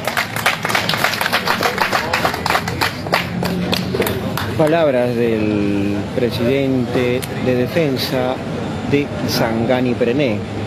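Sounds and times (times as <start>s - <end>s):
crowd applause: 0.0s - 4.6s
speech: 4.6s - 10.6s.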